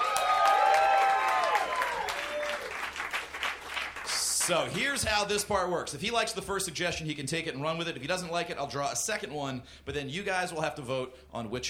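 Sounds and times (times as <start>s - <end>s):
audience clapping: 0.0s - 5.2s
speech: 4.5s - 11.6s.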